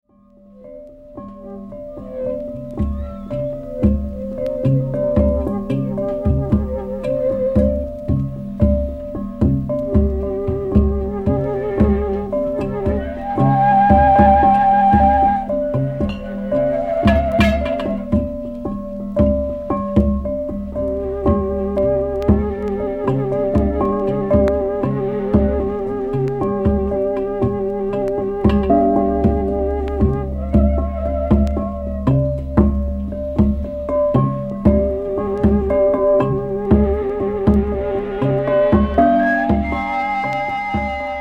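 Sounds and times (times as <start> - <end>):
glass orchestra playing: 0.2 - 41.2.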